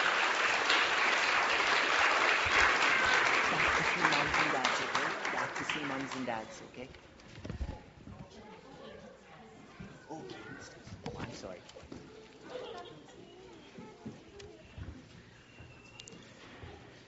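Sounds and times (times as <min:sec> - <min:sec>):
audience applause for preschoolers: 0:00.0 - 0:06.6.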